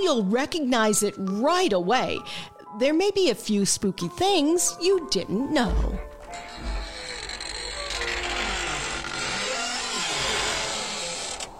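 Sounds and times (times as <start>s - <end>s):
speech: 0.0s - 6.7s
slow heavy footsteps: 5.6s - 7.0s
creaking coffin lid: 5.7s - 11.5s.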